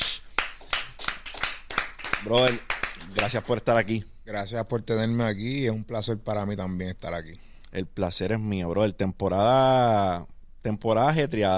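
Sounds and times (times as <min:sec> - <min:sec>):
audience applause: 0:00.4 - 0:03.6
speech: 0:02.2 - 0:11.5.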